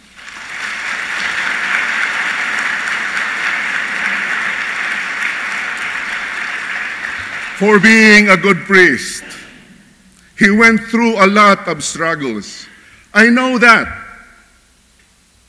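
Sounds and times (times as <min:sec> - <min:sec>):
audience applause: 0:00.0 - 0:09.0
speech: 0:07.6 - 0:09.4, 0:10.4 - 0:14.0.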